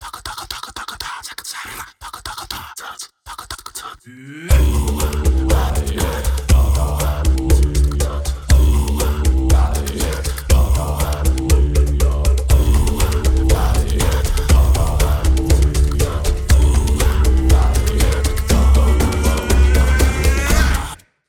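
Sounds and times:
teaser music: 4.6 - 21.0.

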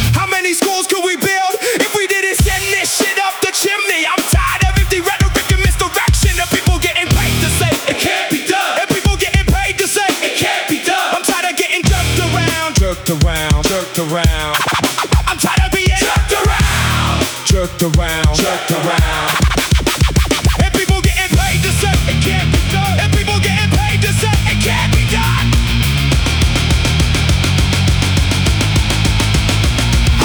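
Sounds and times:
loud rock music: 0.0 - 30.2.

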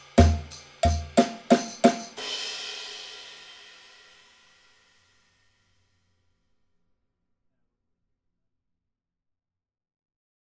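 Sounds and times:
descending drums: 0.0 - 4.0.

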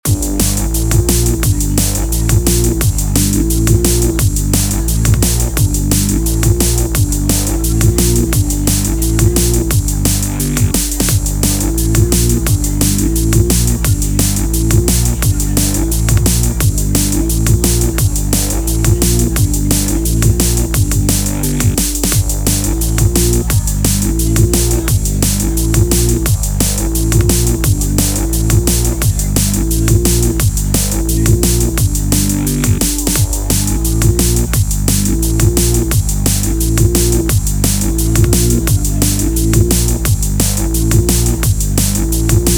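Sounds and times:
drum and bass music: 0.0 - 42.5.

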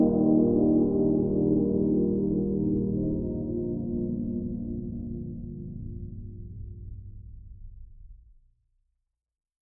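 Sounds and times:
mellow music: 0.0 - 7.5.

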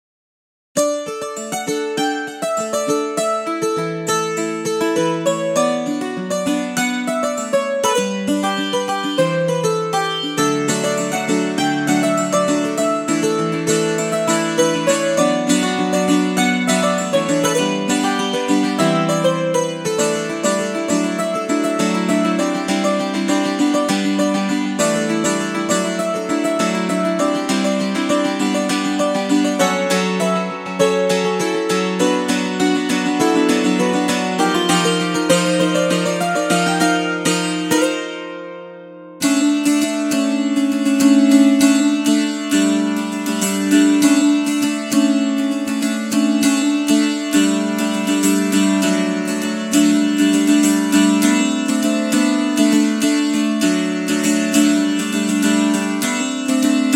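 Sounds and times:
mountain dulcimer: 0.8 - 56.9.

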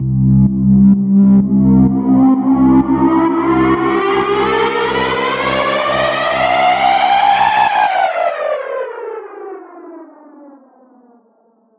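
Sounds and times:
horror music: 0.0 - 8.3.

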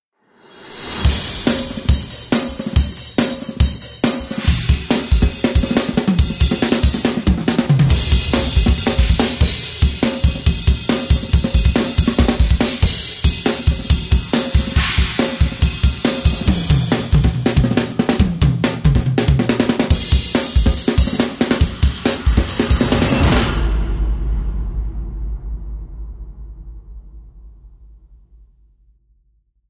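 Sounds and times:
rock drums: 0.7 - 24.4.

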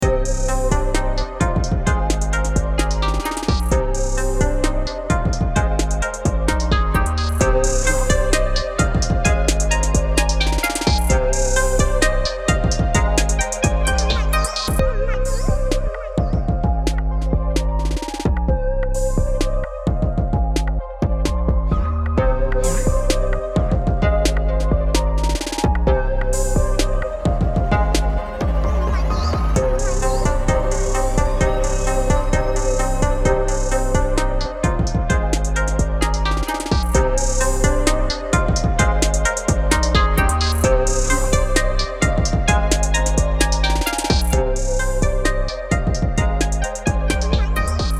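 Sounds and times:
Japanese chill music: 0.0 - 47.9.

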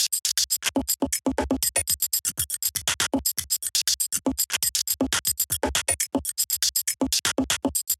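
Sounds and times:
loop: 0.0 - 7.9.

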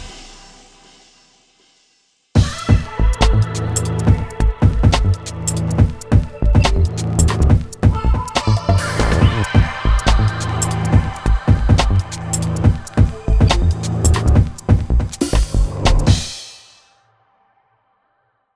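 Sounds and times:
vinyl record playing: 2.5 - 16.2.

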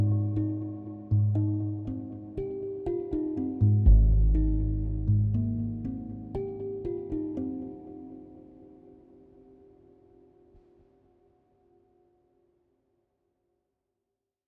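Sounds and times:
aquatic glockenspiel machine tones: 0.0 - 10.0.

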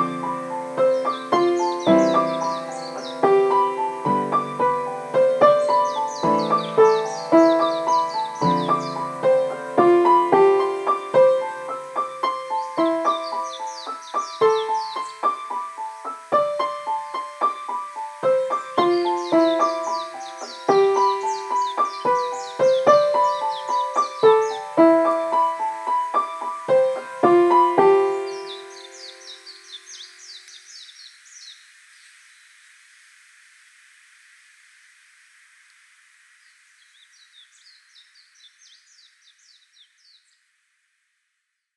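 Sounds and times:
piano playing in a room: 0.0 - 29.7.

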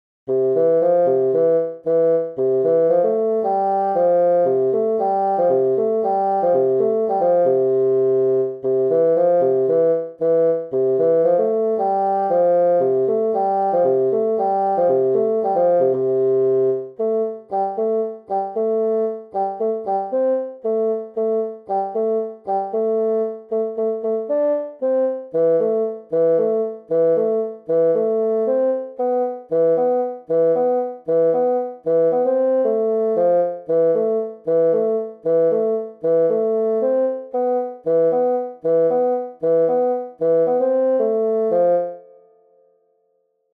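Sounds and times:
bassoon: 0.3 - 42.1.

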